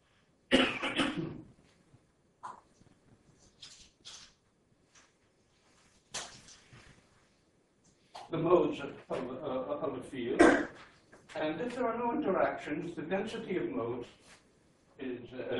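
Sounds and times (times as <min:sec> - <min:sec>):
man coughing during an asthma attack: 0:00.5 - 0:01.4, 0:10.4 - 0:10.8
speech: 0:08.3 - 0:14.4.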